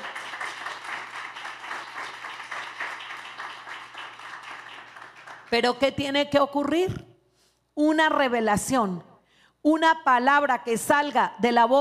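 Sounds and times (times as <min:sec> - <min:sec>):
audience applause: 0:00.0 - 0:05.5
speech: 0:05.5 - 0:07.0, 0:07.8 - 0:11.7.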